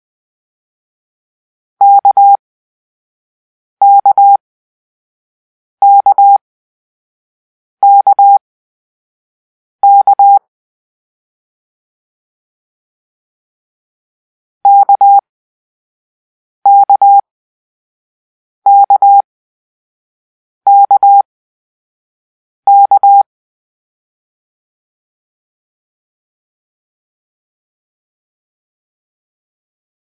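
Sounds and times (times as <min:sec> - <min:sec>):
morse code letter K beeps: 0:01.8 - 0:02.4, 0:03.8 - 0:04.4, 0:05.8 - 0:06.4, 0:07.8 - 0:08.4, 0:09.8 - 0:10.4, 0:14.7 - 0:15.2, 0:16.7 - 0:17.2, 0:18.7 - 0:19.2, 0:20.7 - 0:21.2, 0:22.7 - 0:23.2.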